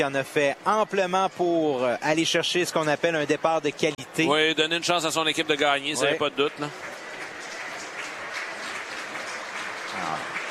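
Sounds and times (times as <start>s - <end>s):
speech: 0.0s - 6.9s
spectators applauding at baseball game: 4.3s - 10.4s.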